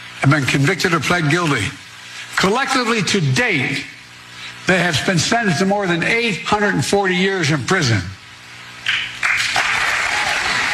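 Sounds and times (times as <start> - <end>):
speech: 0.2 - 1.8, 2.4 - 3.9, 4.7 - 8.2
audience applause: 8.9 - 10.7.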